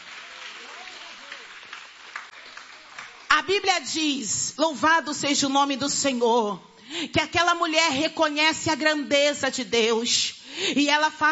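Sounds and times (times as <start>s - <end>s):
audience clapping hands: 0.0s - 3.7s
speech: 3.4s - 11.3s.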